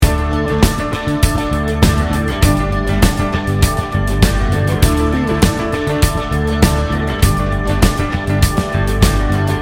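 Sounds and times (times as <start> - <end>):
good time rock loop: 0.0 - 9.6.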